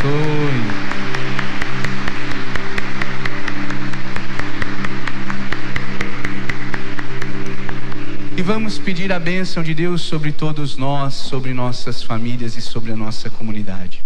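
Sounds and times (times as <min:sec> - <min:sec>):
audience applauding: 0:00.0 - 0:10.6
speech: 0:08.4 - 0:14.0.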